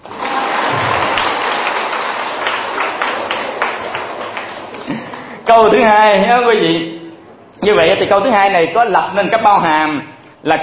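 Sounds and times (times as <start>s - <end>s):
audience clapping at a Vietnamese Buddhist teaching class: 0.0s - 5.5s
speech: 5.6s - 6.9s, 7.6s - 10.6s.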